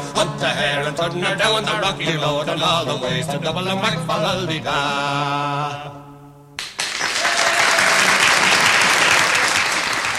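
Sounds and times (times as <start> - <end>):
folk song sung with accompaniment: 0.0 - 6.6
speech: 0.2 - 6.0
audience applause after a folk song: 6.6 - 10.1.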